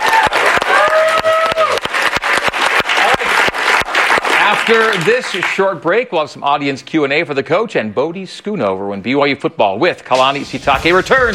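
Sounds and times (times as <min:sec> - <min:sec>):
audience applause for a BYU football coach and guest at a studio segment: 0:00.0 - 0:05.8
speech: 0:04.7 - 0:11.3.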